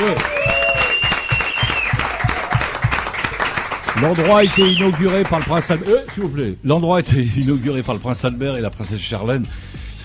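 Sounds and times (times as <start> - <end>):
faint whistles or cheers: 0.0 - 2.6, 4.2 - 5.0
audience applause: 0.0 - 6.3
louder rhythmic claps: 0.0 - 8.3
speech: 4.0 - 9.7.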